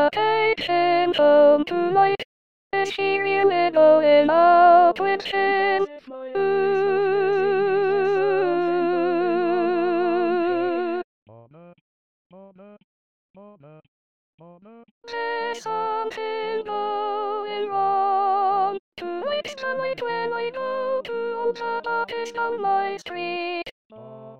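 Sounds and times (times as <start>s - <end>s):
soprano singing: 0.0s - 2.2s, 2.8s - 11.0s, 15.1s - 23.7s.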